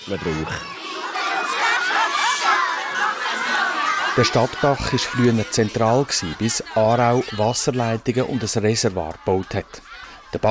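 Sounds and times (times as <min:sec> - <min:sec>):
speech: 0:00.0 - 0:00.8, 0:04.2 - 0:10.4
thousands of children singing festival chant: 0:00.0 - 0:10.4
laughter: 0:00.2 - 0:10.4.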